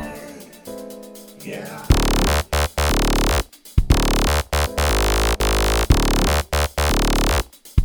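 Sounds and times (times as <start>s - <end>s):
fart synth sound: 1.9s - 7.8s.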